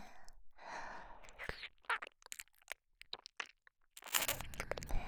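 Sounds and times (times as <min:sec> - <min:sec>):
ear licking with saliva: 0:01.2 - 0:04.9.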